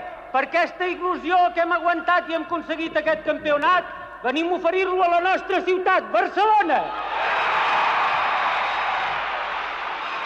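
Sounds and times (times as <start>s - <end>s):
speech: 0.3s - 7.1s
crowd ovation with cheering and clapping in parliament: 6.9s - 10.2s.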